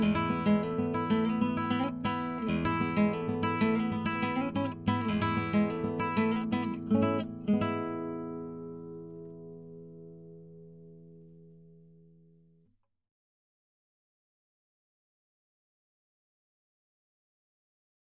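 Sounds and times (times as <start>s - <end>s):
instrumental on nylon strung Spanish guitar: 0.0s - 12.6s.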